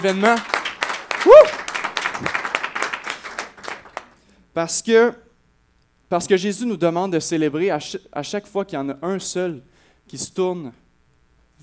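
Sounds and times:
speech: 0:00.0 - 0:00.5, 0:01.2 - 0:01.6, 0:02.2 - 0:02.4, 0:04.6 - 0:05.2, 0:06.1 - 0:10.8
crowd applauding: 0:00.0 - 0:04.2
rising vocal whoop: 0:01.2 - 0:01.6.

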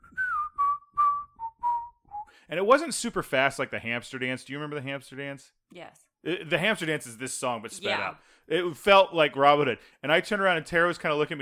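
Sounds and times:
person whistling a phone ringtone melody: 0:00.0 - 0:02.4
speech: 0:02.5 - 0:11.4.

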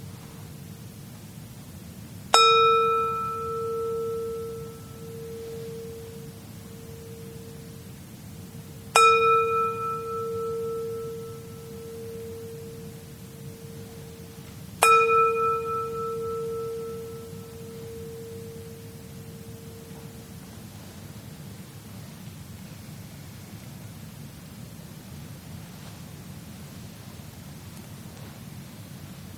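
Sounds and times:
faint hiss: 0:00.0 - 0:29.3
meditation bell being rung: 0:02.3 - 0:21.6.

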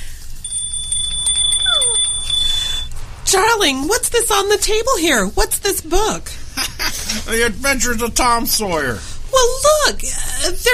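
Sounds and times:
Christmas bell ringing: 0:00.4 - 0:03.0
speech: 0:03.3 - 0:10.7
laughter: 0:06.5 - 0:07.5.

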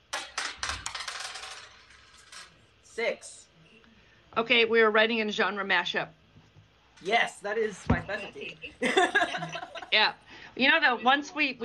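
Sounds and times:
dice rolled onto a hard surface: 0:00.2 - 0:02.6
speech: 0:03.0 - 0:03.5, 0:04.4 - 0:06.2, 0:07.0 - 0:11.6
laughter: 0:08.5 - 0:10.0.

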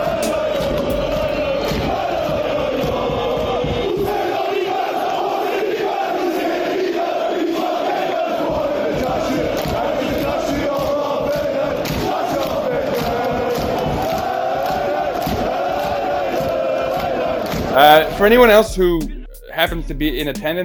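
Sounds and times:
large football match crowd chanting: 0:00.0 - 0:18.8
speech: 0:17.9 - 0:20.6.

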